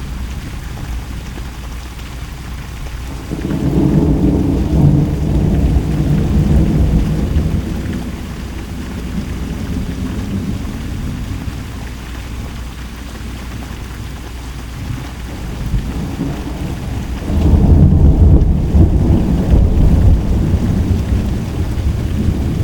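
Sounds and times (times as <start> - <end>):
thunder: 3.1 - 11.7, 15.3 - 22.6.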